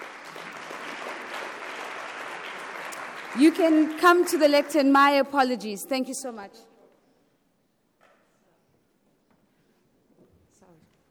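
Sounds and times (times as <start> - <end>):
audience applause: 0.0 - 5.0
speech: 3.3 - 6.7.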